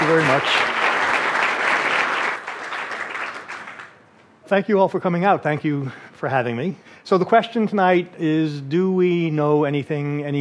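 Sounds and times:
audience clapping welcoming an author to the stage at a book talk: 0.0 - 4.1
speech: 0.1 - 0.8, 4.5 - 10.4.

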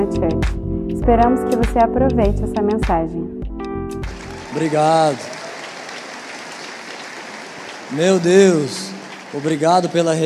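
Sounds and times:
speech: 0.0 - 3.3, 4.5 - 5.4, 7.9 - 10.2
audience applause: 4.0 - 10.2.

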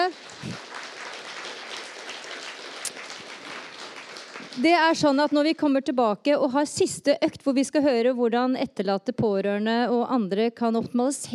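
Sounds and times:
audience applause: 0.0 - 5.2
speech: 4.6 - 11.3.

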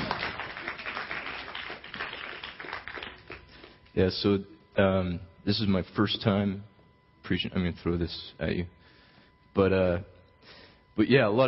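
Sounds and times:
audience applause: 0.0 - 3.5
speech: 4.0 - 6.7, 7.3 - 8.8, 9.6 - 11.4.

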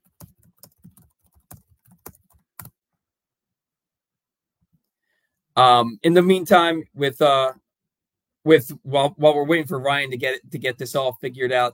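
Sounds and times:
typing on a computer keyboard: 0.0 - 2.8
speech: 5.6 - 7.6, 8.4 - 11.7.

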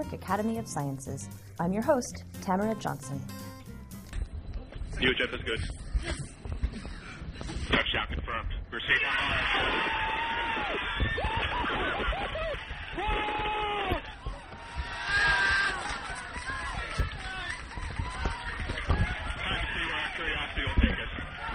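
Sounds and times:
speech: 0.0 - 3.5, 5.0 - 6.3, 7.7 - 10.1
crowd cheering at NASA Jet Propulsion Lab mission control in Pasadena: 8.9 - 21.5.

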